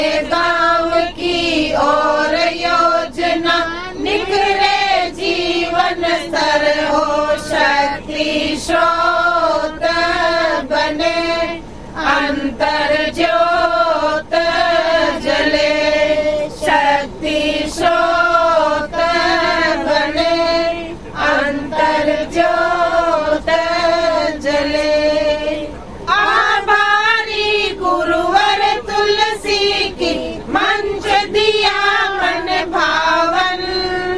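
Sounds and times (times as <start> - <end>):
women singing a feminist song on a train in India: 0.0 - 34.1.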